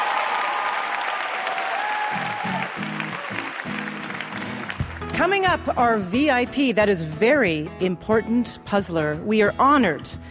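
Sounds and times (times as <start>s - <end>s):
audience applause: 0.0s - 5.1s
speech: 5.2s - 10.2s.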